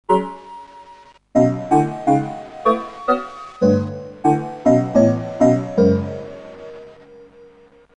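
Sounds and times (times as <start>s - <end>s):
chord wave: 1.4s - 7.5s.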